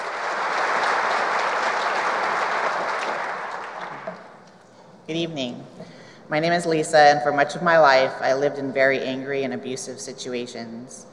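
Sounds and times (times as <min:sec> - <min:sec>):
church audience applauding a welcome for a woman about to share her story: 0:00.0 - 0:04.4
speech: 0:05.1 - 0:11.1.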